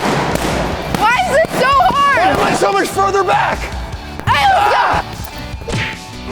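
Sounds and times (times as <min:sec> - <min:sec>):
balloon struck hard but not popping: 0:00.0 - 0:02.7
excited shouting voices: 0:00.9 - 0:05.2
speech: 0:02.7 - 0:03.8.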